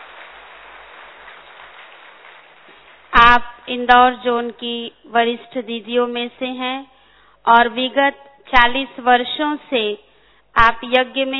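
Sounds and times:
audience applause welcoming a speaker: 0:00.0 - 0:03.2
speech: 0:03.3 - 0:10.0, 0:10.6 - 0:11.3.

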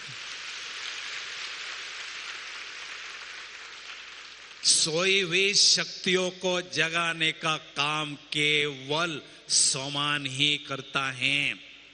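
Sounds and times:
crowd clapping: 0:00.0 - 0:05.3
speech: 0:04.6 - 0:11.7.

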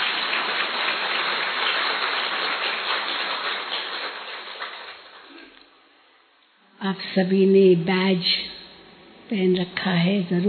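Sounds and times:
audience clapping: 0:00.0 - 0:05.6
speech: 0:06.8 - 0:08.5, 0:09.3 - 0:10.4.

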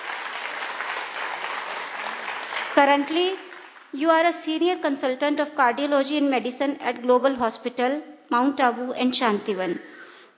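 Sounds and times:
audience applause for a cardiologist being introduced: 0:00.0 - 0:04.0
speech: 0:02.8 - 0:10.3.

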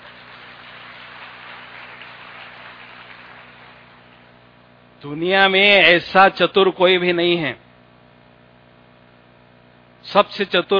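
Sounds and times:
audience clapping: 0:00.0 - 0:04.4
speech: 0:05.0 - 0:07.6, 0:10.1 - 0:10.7.

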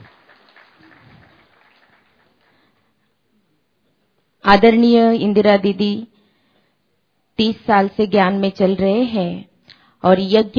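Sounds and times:
welcoming applause from meeting participants: 0:00.0 - 0:03.1
speech: 0:04.5 - 0:06.1, 0:07.4 - 0:10.5.

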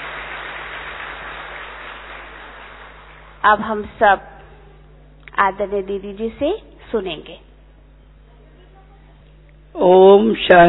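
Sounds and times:
thunderous applause: 0:00.0 - 0:03.7
speech: 0:03.4 - 0:04.3, 0:05.4 - 0:07.5, 0:09.8 - 0:10.6.

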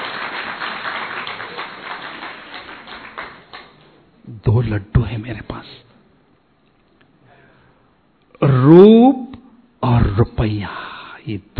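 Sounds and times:
crowd clapping: 0:00.0 - 0:04.0
speech: 0:04.4 - 0:05.9, 0:08.7 - 0:09.2, 0:09.9 - 0:11.5.

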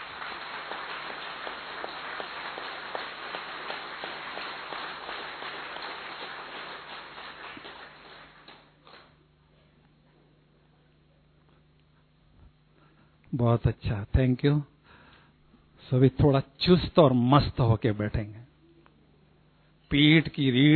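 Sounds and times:
audience clapping loudly: 0:00.0 - 0:09.2
speech: 0:13.4 - 0:14.7, 0:15.9 - 0:18.4, 0:19.9 - 0:20.7.

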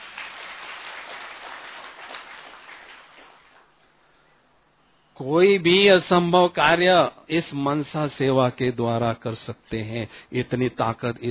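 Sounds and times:
crowd applause: 0:00.0 - 0:03.6
speech: 0:05.2 - 0:11.2.

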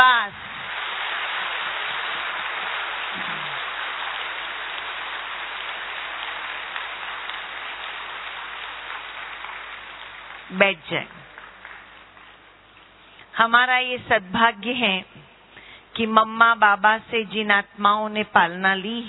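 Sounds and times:
audience clapping hands in welcome: 0:00.0 - 0:13.0
speech: 0:10.6 - 0:11.3, 0:13.4 - 0:15.2, 0:16.0 - 0:19.0.

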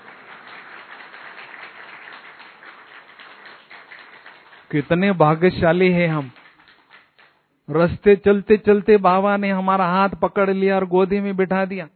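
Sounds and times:
crowd applauding: 0:00.0 - 0:07.4
speech: 0:04.7 - 0:06.4, 0:07.7 - 0:11.9.

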